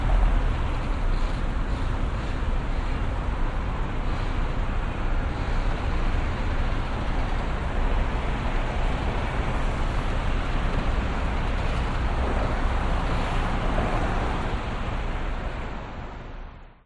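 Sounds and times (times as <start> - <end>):
busy city vehicle traffic in Brisbane North Quay: 0.0 - 16.8.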